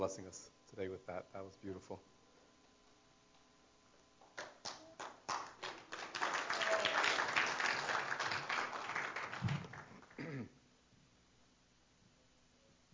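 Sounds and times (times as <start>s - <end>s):
speech: 0.0s - 2.2s
audience clapping: 4.2s - 10.2s.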